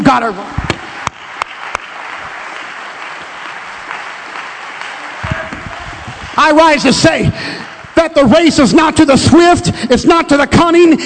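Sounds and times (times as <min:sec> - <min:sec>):
speech: 0:00.1 - 0:00.6, 0:06.4 - 0:11.0
sharp hand claps: 0:00.7 - 0:06.4
crowd applause: 0:00.8 - 0:08.5.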